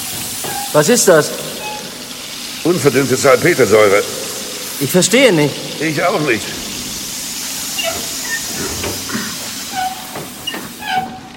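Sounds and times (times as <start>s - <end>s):
metallic squeals and clanks: 0.0s - 2.5s, 6.5s - 11.3s
steam train hissing: 0.0s - 11.3s
speech: 0.7s - 1.6s, 2.6s - 4.2s, 4.8s - 6.6s.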